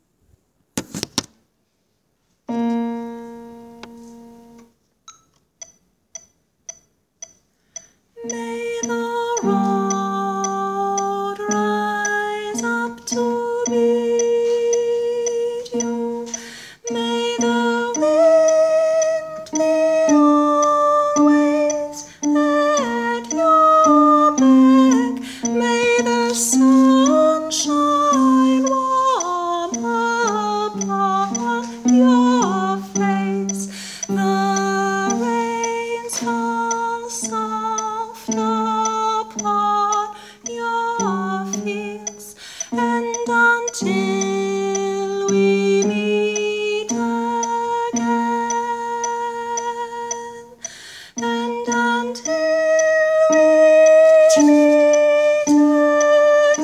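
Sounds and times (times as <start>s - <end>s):
tenor singing: 8.2s - 56.6s.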